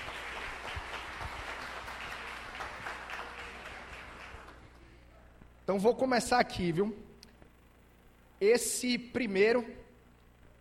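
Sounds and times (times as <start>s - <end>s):
applause: 0.0s - 4.8s
speech: 5.7s - 7.1s, 8.4s - 9.8s.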